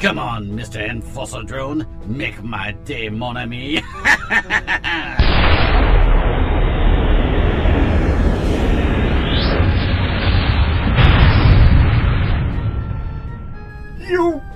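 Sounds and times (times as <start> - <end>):
speech: 0.0 - 5.6, 14.1 - 14.5
laughter: 3.7 - 5.2
explosion hit: 5.2 - 13.6
rocket launcher fired: 5.2 - 13.6.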